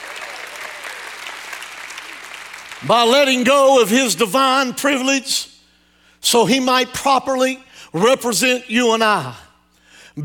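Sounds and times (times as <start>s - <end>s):
audience applause: 0.0s - 2.9s
speech: 2.8s - 5.5s, 6.2s - 9.4s.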